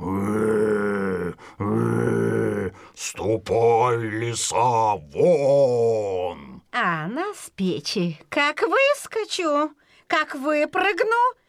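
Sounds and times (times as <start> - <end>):
human voice imitating a bear growling: 0.0 - 6.6
speech: 3.1 - 6.3, 7.6 - 11.4.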